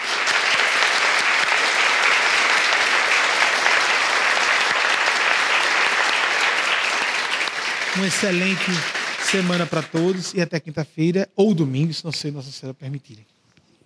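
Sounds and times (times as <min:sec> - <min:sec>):
audience applause: 0:00.0 - 0:10.4
speech: 0:08.0 - 0:13.8.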